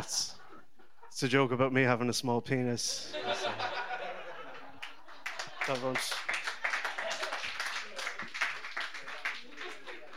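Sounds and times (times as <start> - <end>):
speech: 1.2 - 3.6, 5.7 - 6.2
laughter: 2.9 - 10.1
audience clapping: 4.5 - 10.1.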